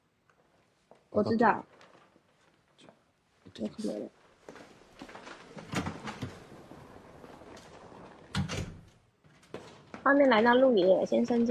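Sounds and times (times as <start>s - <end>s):
speech: 1.1s - 1.8s, 3.6s - 4.2s, 10.1s - 11.5s
door being pushed open: 5.4s - 6.7s, 7.5s - 9.8s.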